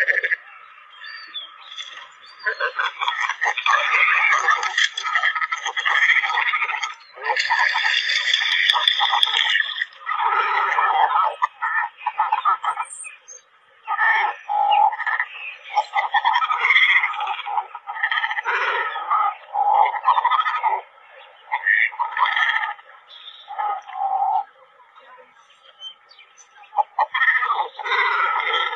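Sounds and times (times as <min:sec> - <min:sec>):
cormorants croaking and squawking: 0:00.0 - 0:28.7.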